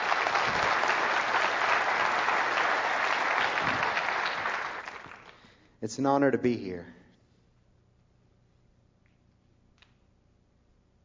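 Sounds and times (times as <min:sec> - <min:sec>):
audience applause welcoming a poet to the stage: 0:00.0 - 0:05.4
speech: 0:05.8 - 0:07.0.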